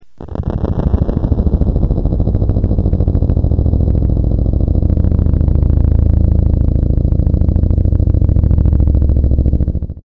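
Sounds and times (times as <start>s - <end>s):
helicopter: 0.8s - 10.0s.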